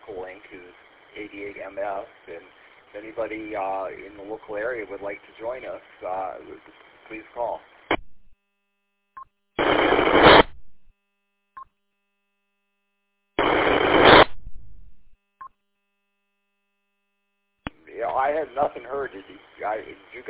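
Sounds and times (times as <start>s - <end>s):
radio static bursts: 0.0s - 8.0s, 9.6s - 10.6s, 13.4s - 14.7s, 17.7s - 20.2s
speech: 0.1s - 7.7s, 18.8s - 20.2s.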